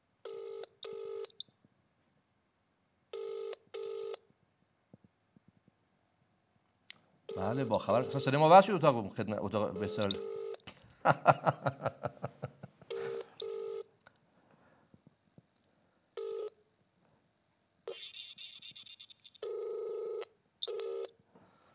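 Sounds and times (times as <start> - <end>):
ringing tones of an unanswered telephone call: 0.2 - 1.4, 3.1 - 4.2, 7.3 - 8.6, 9.7 - 10.6, 12.9 - 13.9, 16.2 - 16.6, 19.3 - 21.1
speech: 7.4 - 10.4, 11.0 - 12.0
laughter: 11.0 - 13.3
touch-tone telephone keypad dialling beeps: 17.9 - 19.4.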